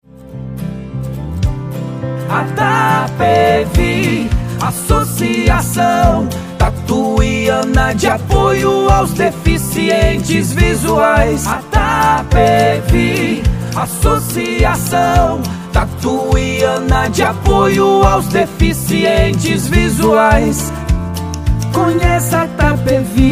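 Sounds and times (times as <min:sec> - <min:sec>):
jingle: 0:02.2 - 0:23.2.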